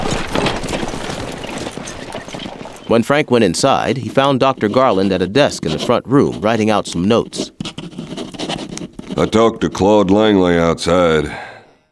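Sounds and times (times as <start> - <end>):
horse-drawn wagon rattling: 0.0 - 5.9
faint hoof-like knocks: 0.4 - 6.6
speech: 2.9 - 7.6, 9.2 - 11.5.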